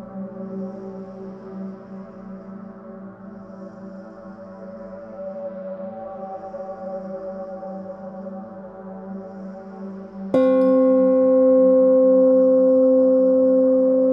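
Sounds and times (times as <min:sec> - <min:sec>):
space soundscape: 0:00.0 - 0:14.1
gong: 0:10.4 - 0:14.1.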